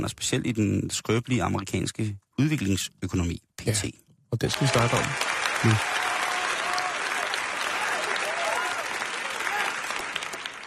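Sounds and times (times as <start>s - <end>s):
speech: 0.0s - 5.9s
crowd applause: 4.5s - 10.6s.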